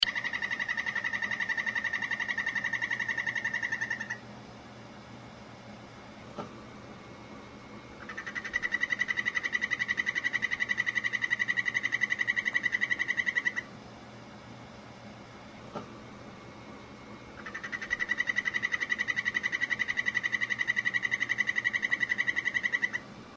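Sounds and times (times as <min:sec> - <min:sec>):
P. terribilis calling: 0:00.0 - 0:04.3, 0:07.9 - 0:13.7, 0:17.1 - 0:23.1.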